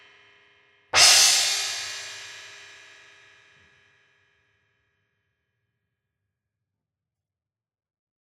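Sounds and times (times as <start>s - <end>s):
14-inch flanger crash cymbal: 1.0s - 2.4s.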